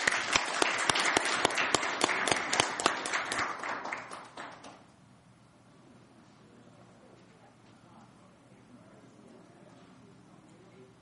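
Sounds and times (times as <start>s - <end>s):
audience applause: 0.0s - 4.8s.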